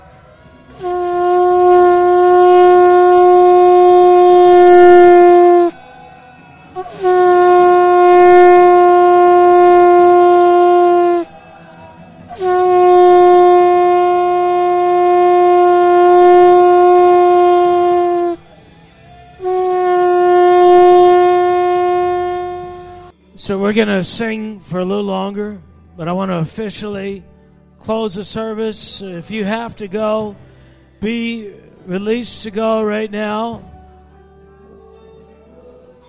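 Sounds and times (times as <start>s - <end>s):
shofar ram's horn being blown: 0.7s - 5.8s, 6.7s - 11.4s, 12.3s - 18.5s, 19.4s - 23.1s
speech: 23.8s - 30.4s, 31.0s - 33.7s.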